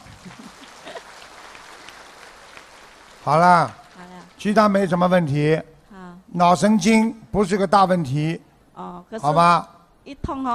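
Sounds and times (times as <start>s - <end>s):
audience applause: 0.0s - 5.2s
speech: 3.2s - 3.8s, 4.4s - 5.7s, 6.3s - 10.5s.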